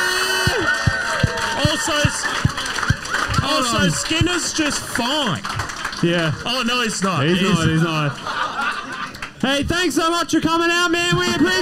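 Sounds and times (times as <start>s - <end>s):
rhythmic clapping or stomping thumps: 0.0s - 6.5s
audience cheering and whooping: 0.0s - 10.0s
laughter: 0.9s - 9.4s
speech: 3.5s - 8.4s, 9.4s - 11.6s.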